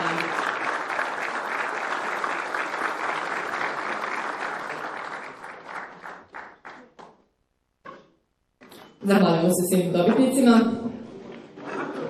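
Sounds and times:
audience applause for award winners at a city council ceremony in Bosanska Krupa: 0.0s - 7.3s
speech: 9.0s - 10.9s.

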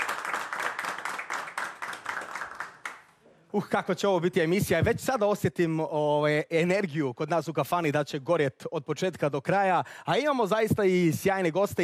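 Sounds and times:
audience clapping in rhythm in a kafana: 0.0s - 3.2s
speech: 3.5s - 11.8s.

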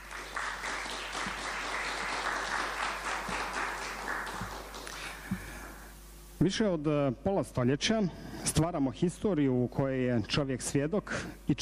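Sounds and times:
audience applauding after a live performance of a Bosnian suite in Gradačac: 0.0s - 5.4s
speech: 6.4s - 11.6s.

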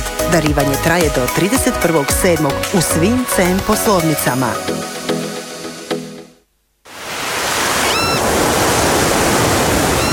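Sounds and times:
music: 0.0s - 6.4s
speech: 0.3s - 4.8s
sea waves rolling in by the Baško Polje shore on the Makarska Riviera: 6.9s - 10.1s.

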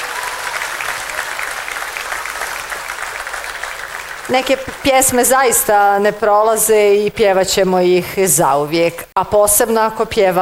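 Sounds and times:
large audience applause at a live music show: 0.0s - 5.4s
speech: 4.3s - 10.4s.

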